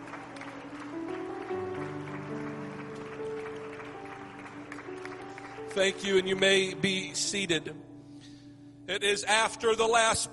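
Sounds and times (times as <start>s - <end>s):
audience applause: 0.0s - 6.4s
organ or keyboard chords: 0.0s - 10.3s
speech: 5.8s - 7.9s, 8.9s - 10.3s.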